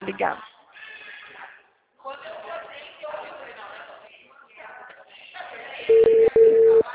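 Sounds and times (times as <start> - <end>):
telephone ringback tone: 5.9 - 6.8.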